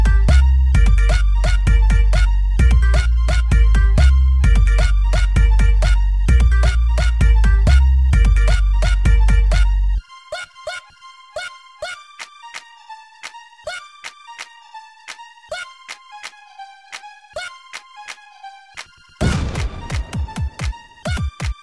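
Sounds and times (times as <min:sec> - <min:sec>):
funk music: 0:00.0 - 0:10.8, 0:19.2 - 0:21.6.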